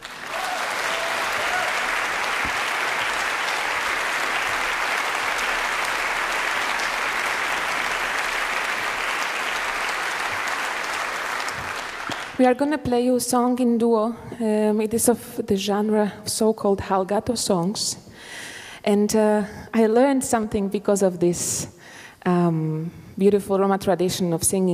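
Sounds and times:
audience applause: 0.0s - 12.4s
speech: 12.4s - 24.7s.

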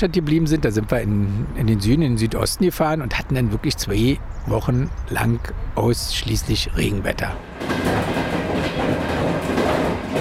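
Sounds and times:
speech: 0.0s - 8.2s
train clattering along rails: 6.8s - 10.1s.

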